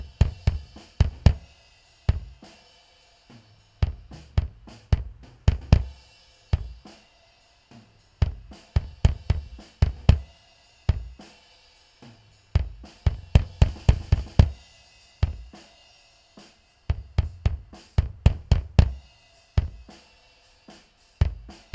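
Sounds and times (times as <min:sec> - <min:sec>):
bass drum: 0:00.0 - 0:02.5, 0:03.4 - 0:06.0, 0:06.6 - 0:06.9, 0:07.8 - 0:11.2, 0:12.5 - 0:15.6, 0:16.9 - 0:20.0, 0:21.2 - 0:21.7.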